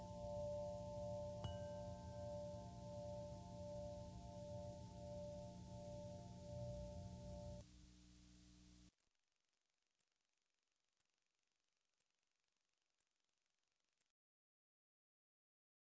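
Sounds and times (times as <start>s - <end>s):
wind chime: 0.0s - 7.6s.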